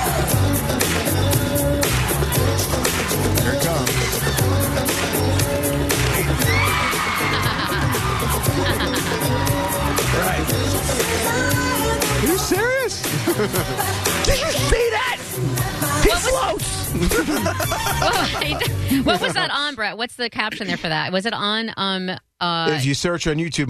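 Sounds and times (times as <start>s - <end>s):
loud pounding music with a steady beat: 0.0s - 19.5s
concert crowd screaming: 6.2s - 11.4s
laughter: 7.1s - 10.4s, 13.0s - 14.2s, 16.9s - 19.8s, 20.4s - 21.0s
speech: 17.0s - 23.6s.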